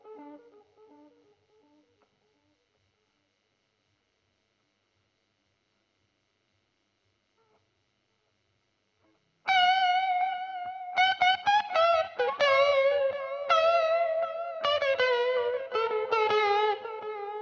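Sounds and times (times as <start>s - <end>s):
guitar recorded with Royer microphone: 0.0s - 1.9s, 9.0s - 17.4s.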